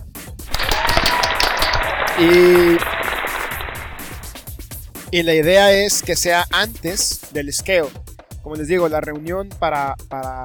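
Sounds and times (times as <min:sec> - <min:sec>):
audience applause: 0:00.5 - 0:04.5
speech: 0:02.2 - 0:02.9, 0:05.1 - 0:10.4.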